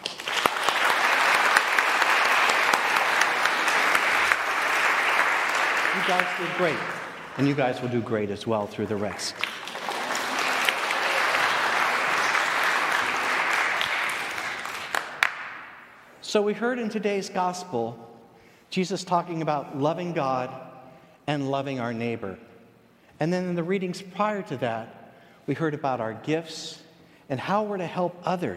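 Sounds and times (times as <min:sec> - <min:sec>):
audience applause: 0:00.0 - 0:15.8
speech: 0:06.1 - 0:09.5, 0:16.3 - 0:18.1, 0:18.7 - 0:20.7, 0:21.3 - 0:22.5, 0:23.2 - 0:28.5.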